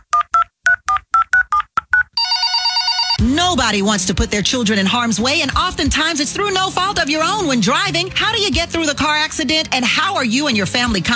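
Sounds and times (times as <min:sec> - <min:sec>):
telephone keypad dialing tones: 0:00.2 - 0:03.2
speech: 0:03.5 - 0:11.1.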